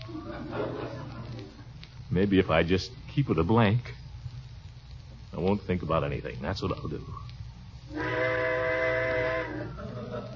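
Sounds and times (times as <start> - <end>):
laughter: 0.0 - 1.7, 9.5 - 10.3
speech: 2.2 - 4.0, 5.4 - 7.3
train whistle blowing: 7.9 - 9.8.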